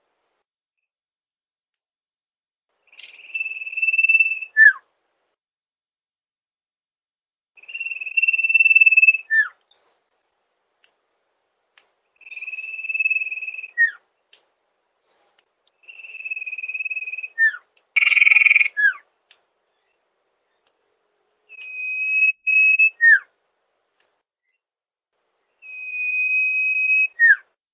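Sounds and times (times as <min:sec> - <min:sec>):
bird song used for training songbirds: 0:02.8 - 0:04.9, 0:07.6 - 0:10.4, 0:12.1 - 0:14.4, 0:15.0 - 0:23.3, 0:24.4 - 0:24.7, 0:25.4 - 0:27.5.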